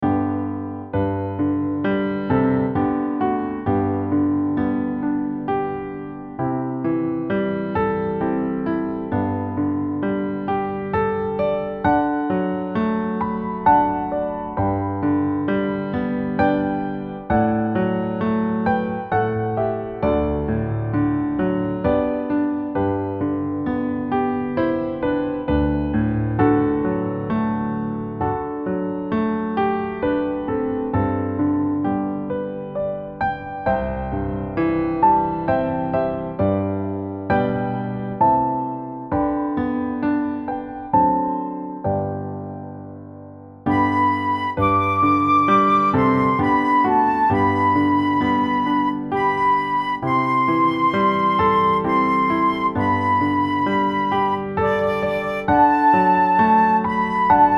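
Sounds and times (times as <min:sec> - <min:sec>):
instrumental music: 0:00.0 - 0:57.5.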